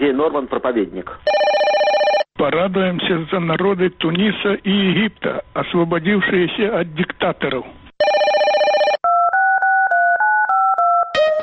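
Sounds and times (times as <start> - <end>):
speech: 0.0 - 1.5, 2.4 - 7.8
bright buzzy telephone ringing chord: 1.3 - 2.3, 8.0 - 11.4.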